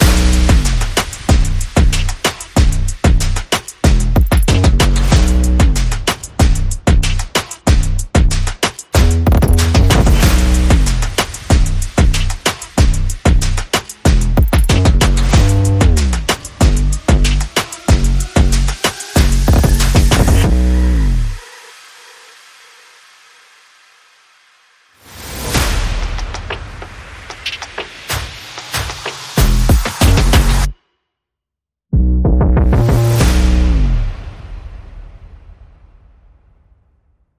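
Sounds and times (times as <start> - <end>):
bass: 0.0 - 21.4, 29.4 - 30.7, 31.9 - 34.2
percussion: 0.0 - 24.5, 25.1 - 30.8, 32.0 - 35.2.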